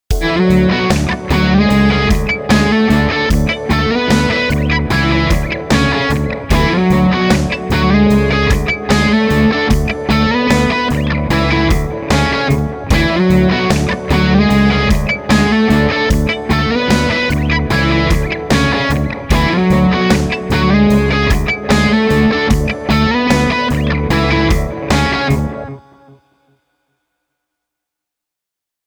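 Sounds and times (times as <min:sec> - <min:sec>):
musical lick: 0:00.2 - 0:25.8.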